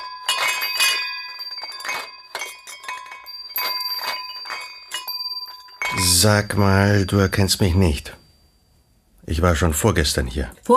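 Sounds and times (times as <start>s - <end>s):
glasses clinking on a tray: 0.0s - 8.1s
speech: 6.0s - 8.2s, 9.3s - 10.7s.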